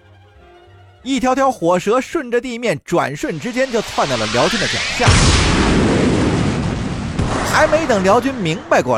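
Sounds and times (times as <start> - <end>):
speech: 1.0 - 5.8, 7.6 - 8.9
landmine explosion: 3.3 - 8.9.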